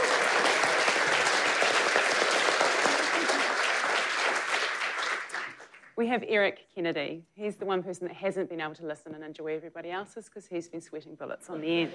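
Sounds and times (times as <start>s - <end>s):
audience applause: 0.0s - 5.9s
speech: 6.0s - 11.9s.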